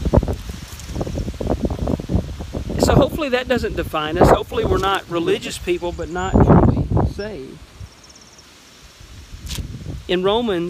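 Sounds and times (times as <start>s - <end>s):
outdoor wind gusting against a camera microphone: 0.0s - 8.0s, 8.9s - 10.6s
speech: 2.8s - 6.6s, 7.2s - 7.6s, 10.1s - 10.6s.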